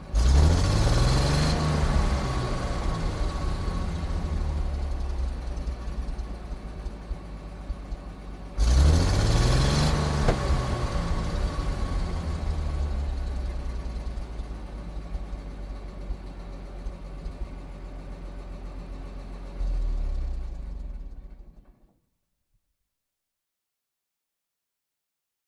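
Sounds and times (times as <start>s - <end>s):
2.5 ton truck engine big revs: 0.0s - 18.1s.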